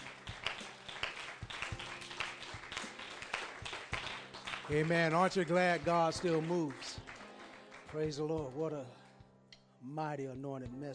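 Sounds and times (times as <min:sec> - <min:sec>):
audience hand clapping in praise: 0:00.0 - 0:08.8
speech: 0:04.7 - 0:06.9, 0:07.9 - 0:09.0, 0:09.8 - 0:10.9.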